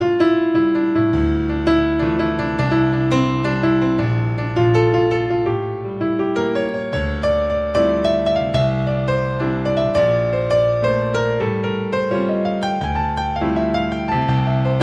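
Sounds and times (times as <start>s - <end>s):
piano: 0.0s - 14.8s.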